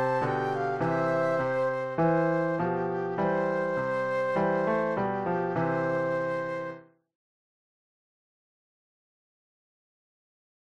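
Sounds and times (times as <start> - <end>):
flute trio: 0.0 - 6.8
piano: 0.0 - 7.1.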